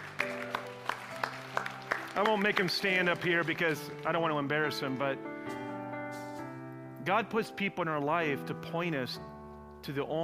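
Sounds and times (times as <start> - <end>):
audience applause: 0.0 - 4.4
speech: 2.2 - 5.3, 7.1 - 10.2.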